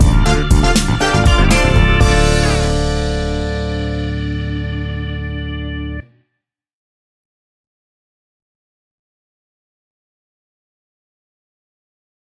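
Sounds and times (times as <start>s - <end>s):
house funk theme stinger: 0.0s - 5.8s.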